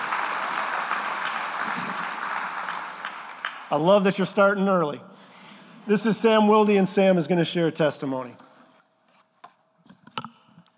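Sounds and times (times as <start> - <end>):
audience clapping: 0.0 - 4.6
speech: 3.7 - 5.1, 5.9 - 8.4.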